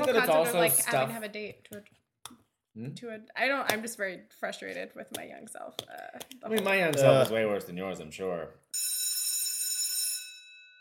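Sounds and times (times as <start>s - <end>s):
speech: 0.0s - 9.1s
bell ringing: 8.7s - 10.8s.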